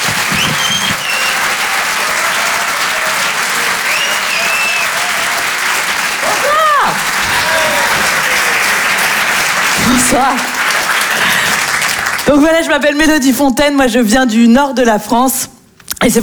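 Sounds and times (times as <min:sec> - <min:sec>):
whoops and whistles from the comedy club audience: 0:00.0 - 0:02.5, 0:03.6 - 0:05.2
comedy club audience at a Paris theatre clapping: 0:00.0 - 0:12.8
speech: 0:10.1 - 0:10.6, 0:12.3 - 0:16.2.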